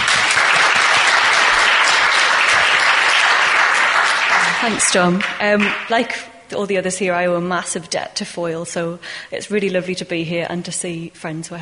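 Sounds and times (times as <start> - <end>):
audience clapping for a poet at a poetry reading in Ledbury: 0.0 - 6.0
speech: 4.6 - 11.6.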